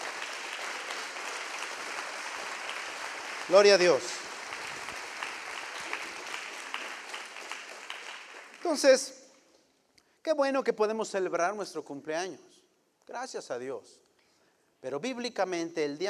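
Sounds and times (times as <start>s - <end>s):
audience applauding: 0.0s - 9.1s
speech: 3.5s - 4.2s, 8.7s - 9.2s, 10.2s - 14.0s, 14.8s - 16.0s.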